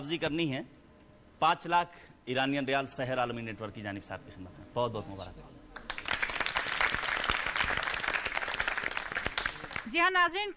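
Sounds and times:
speech: 0.0 - 0.8, 1.4 - 5.5, 9.8 - 10.5
studio audience applause at a televised quiz contest: 5.8 - 9.9.

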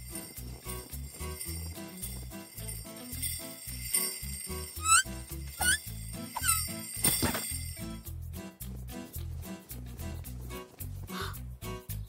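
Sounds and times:
small bell jingling: 0.0 - 8.3
music: 0.0 - 12.0
light chirping: 4.8 - 6.7.

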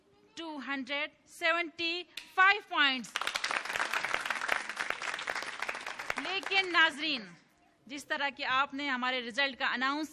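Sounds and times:
speech: 0.7 - 3.8, 6.2 - 10.1
quiz show audience applause: 3.2 - 6.5.

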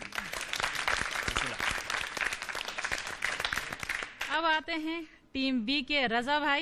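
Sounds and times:
audience clapping: 0.0 - 4.4
speech: 4.4 - 6.6.

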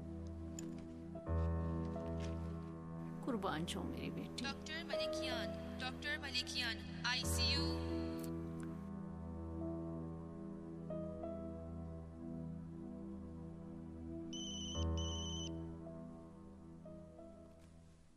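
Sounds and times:
music: 0.0 - 18.1
speech: 3.3 - 8.0
phone ringtone: 14.4 - 15.5.

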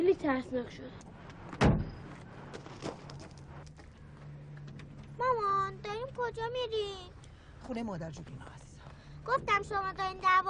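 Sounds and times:
speech: 0.2 - 1.2, 5.2 - 8.6, 9.2 - 10.4
door being opened: 1.5 - 2.1.

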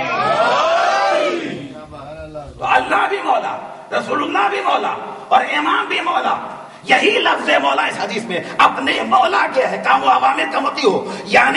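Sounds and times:
crowd shouting a religious slogan in response to a sermon: 0.0 - 1.8
speech: 2.9 - 11.5.

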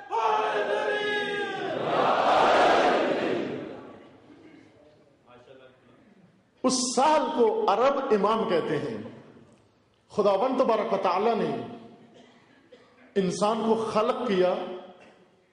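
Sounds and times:
crowd chanting devotional slogans at a religious gathering: 0.2 - 4.2
speech: 6.7 - 9.2, 10.2 - 11.8, 13.2 - 14.7.

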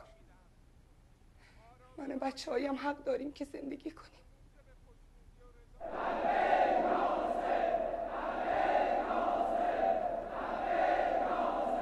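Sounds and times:
speech: 2.0 - 4.3
crowd chanting a battle cry: 5.8 - 11.8.

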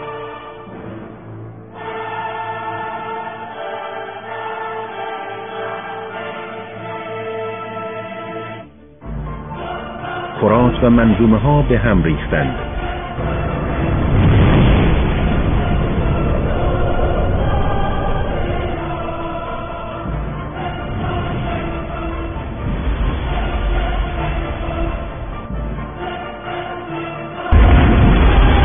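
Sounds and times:
speech: 10.4 - 12.7
huge explosion sound effect: 10.7 - 26.7, 27.5 - 28.6.

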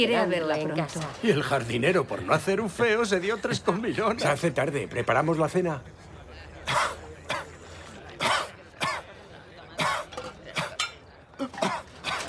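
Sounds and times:
speech: 0.0 - 6.0
person coughing harshly after food went down the wrong way at dinner: 6.7 - 7.6, 8.2 - 9.1, 9.8 - 10.8, 11.4 - 12.2.

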